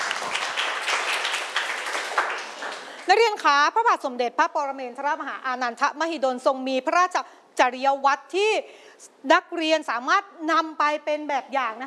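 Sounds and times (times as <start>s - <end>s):
students clapping for a classmate: 0.0s - 3.1s
speech: 3.1s - 11.8s.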